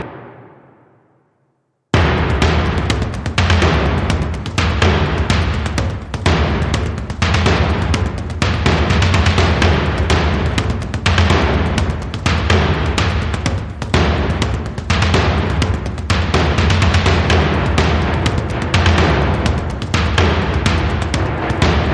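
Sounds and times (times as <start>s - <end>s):
taiko drums: 0.0s - 0.6s, 2.0s - 21.9s.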